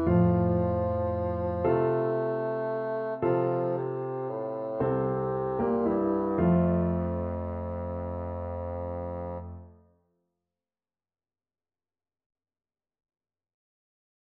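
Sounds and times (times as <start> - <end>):
bassoon melody: 0.0 - 9.8.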